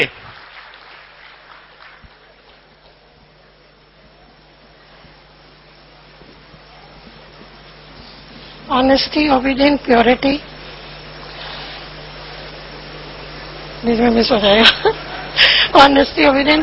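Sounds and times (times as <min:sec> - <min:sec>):
audience clapping: 0:00.0 - 0:03.2
speech: 0:08.7 - 0:10.5, 0:13.8 - 0:16.6.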